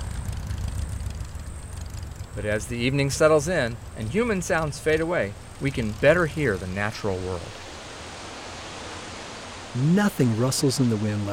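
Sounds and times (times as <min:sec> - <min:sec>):
motorcycle engine starting up and idling: 0:00.0 - 0:06.9
speech: 0:02.4 - 0:07.6, 0:09.8 - 0:11.3.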